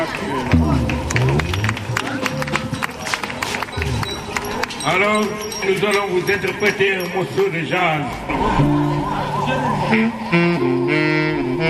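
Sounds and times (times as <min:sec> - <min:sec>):
speech: 0:00.0 - 0:00.8, 0:04.8 - 0:11.6
audience applause: 0:00.0 - 0:04.8
voices calling out and chattering: 0:00.0 - 0:11.6.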